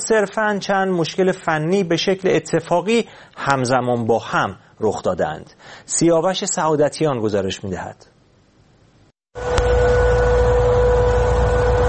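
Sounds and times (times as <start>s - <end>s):
speech: 0.1s - 8.1s
air raid warning siren wailing in west Tehran: 9.4s - 11.8s.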